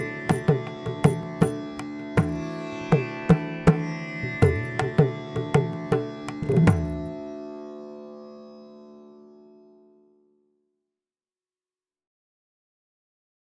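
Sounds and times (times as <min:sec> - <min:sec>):
Indian improvisation backing music: 0:00.0 - 0:10.0.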